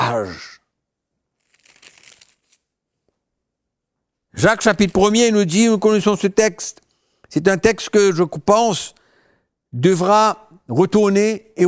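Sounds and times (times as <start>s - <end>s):
speech: 0.1s - 0.5s, 4.4s - 9.0s, 9.7s - 11.6s
thin Bible pages rustling as they are turned: 1.4s - 2.7s.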